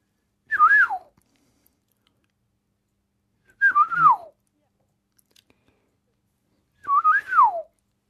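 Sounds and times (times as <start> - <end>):
person whistling imitation of golden oriole song: 0.5 - 1.1, 3.6 - 4.3, 6.8 - 7.8.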